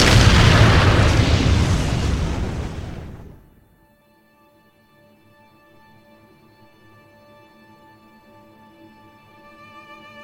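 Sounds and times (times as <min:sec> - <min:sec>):
bombs dropped by airplanes exploding: 0:00.0 - 0:03.6.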